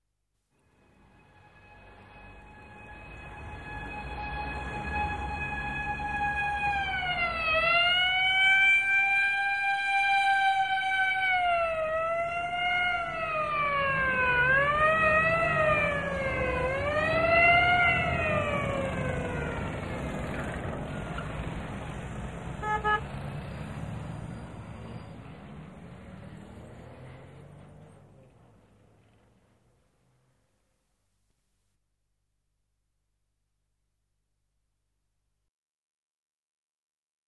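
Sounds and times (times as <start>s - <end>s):
siren wailing: 1.4s - 21.7s.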